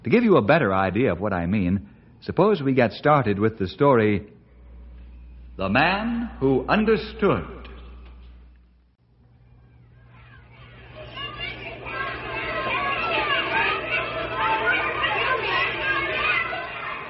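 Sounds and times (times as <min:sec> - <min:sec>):
speech: 0:00.0 - 0:04.4, 0:05.6 - 0:07.6
children shouting and laughing coming home from school: 0:09.3 - 0:17.0.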